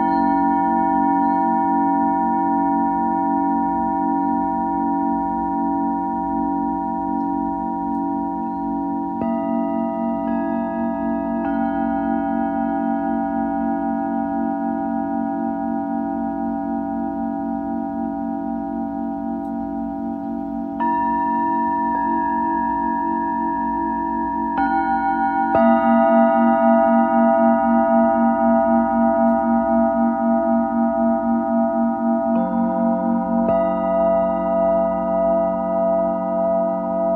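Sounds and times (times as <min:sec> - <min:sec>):
singing bowls ringing: 0:00.0 - 0:37.1.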